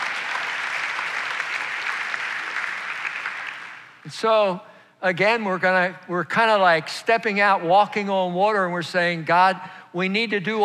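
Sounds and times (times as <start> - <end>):
audience applause in a church building: 0.0 - 4.0
speech: 4.0 - 10.6.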